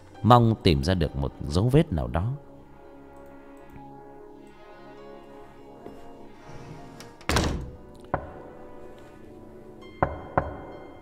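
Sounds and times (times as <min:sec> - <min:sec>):
speech: 0:00.2 - 0:02.5
knocking on a door: 0:08.2 - 0:08.4, 0:10.0 - 0:10.7.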